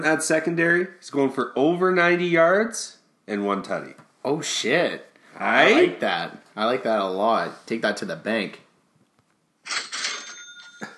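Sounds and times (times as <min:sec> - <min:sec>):
speech: 0:00.0 - 0:08.6, 0:09.7 - 0:09.9
cash register ding: 0:09.7 - 0:10.9.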